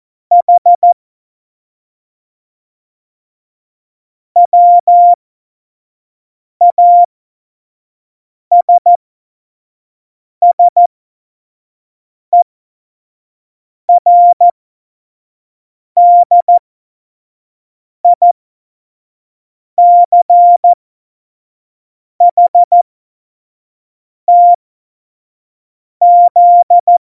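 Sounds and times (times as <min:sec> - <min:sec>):
Morse code beeps for a Morse course: 0:00.3 - 0:01.0, 0:04.4 - 0:05.2, 0:06.6 - 0:07.1, 0:08.5 - 0:09.0, 0:10.4 - 0:10.9, 0:13.9 - 0:14.5, 0:16.0 - 0:16.6, 0:18.2 - 0:18.4, 0:19.8 - 0:20.8, 0:22.2 - 0:22.8, 0:24.3 - 0:24.6, 0:26.0 - 0:26.9.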